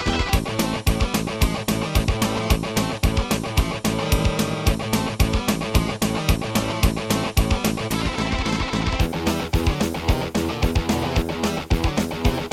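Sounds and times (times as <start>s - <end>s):
synthesizer: 0.0s - 12.5s.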